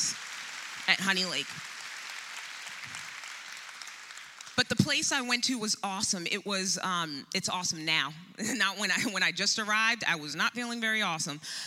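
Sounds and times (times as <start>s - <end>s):
audience hand clapping: 0.0s - 4.6s
speech: 0.9s - 1.7s, 4.6s - 11.6s.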